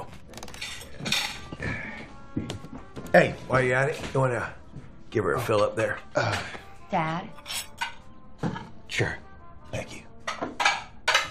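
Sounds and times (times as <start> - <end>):
dishes and cutlery clinking as a young man does the dishes: 0.6 - 1.8, 10.2 - 11.2
speech: 3.1 - 4.6, 5.2 - 7.4, 9.0 - 9.2.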